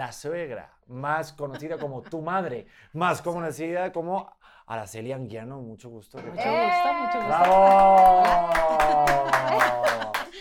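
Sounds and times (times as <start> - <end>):
speech: 0.0 - 10.2
laughter: 1.3 - 2.4, 7.4 - 10.4
rhythmic hand claps: 7.2 - 10.4.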